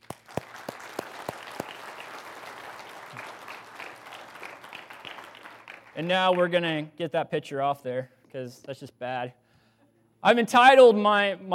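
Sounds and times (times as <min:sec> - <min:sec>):
audience applause: 0:00.0 - 0:06.1
speech: 0:06.0 - 0:09.4, 0:10.2 - 0:11.5.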